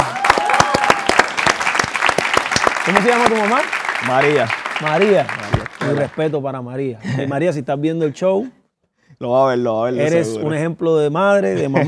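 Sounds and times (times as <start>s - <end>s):
audience applause: 0.0s - 6.4s
speech: 2.8s - 8.6s, 9.2s - 11.8s
laughter: 11.5s - 11.8s.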